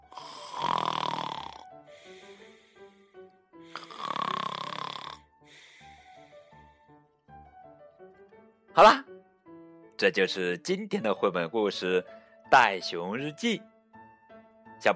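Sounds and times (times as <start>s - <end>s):
loud rasping snores: 0.0s - 2.9s, 3.7s - 6.5s
speech: 8.8s - 9.1s, 10.0s - 13.7s, 14.8s - 14.9s.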